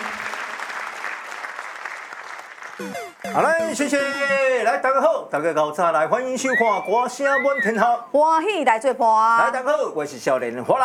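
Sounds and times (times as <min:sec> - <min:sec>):
audience clapping: 0:00.0 - 0:04.0
speech: 0:02.8 - 0:10.8.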